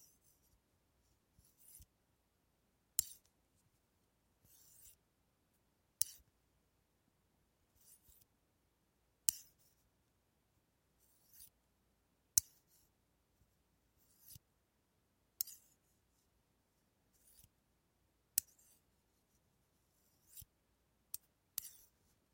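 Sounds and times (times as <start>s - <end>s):
knitting: 0.0s - 2.0s, 2.9s - 5.0s, 6.0s - 6.3s, 7.7s - 8.3s, 9.2s - 9.9s, 11.0s - 11.6s, 12.4s - 14.5s, 15.4s - 16.3s, 17.1s - 17.6s, 18.3s - 22.3s.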